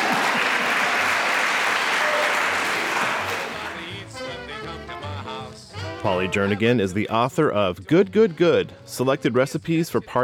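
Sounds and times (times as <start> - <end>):
round of applause: 0.0 - 3.8
speech: 6.0 - 10.2.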